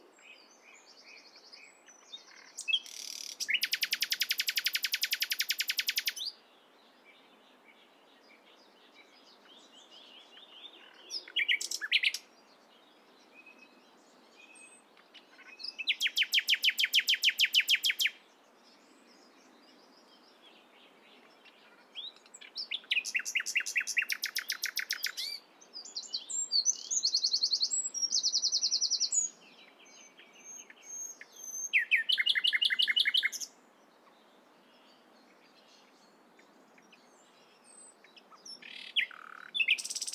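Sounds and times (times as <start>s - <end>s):
common nightingale song: 0.0s - 40.1s.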